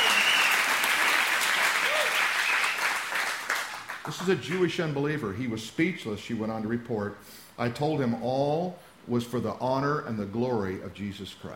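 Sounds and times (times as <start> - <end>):
audience clapping: 0.0 - 4.7
speech: 4.0 - 11.5.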